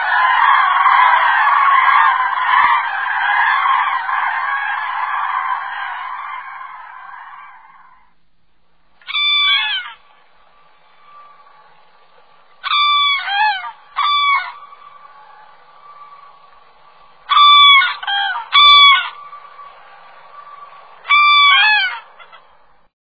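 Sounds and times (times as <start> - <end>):
common crane song: 0.0 - 8.2, 8.8 - 22.9.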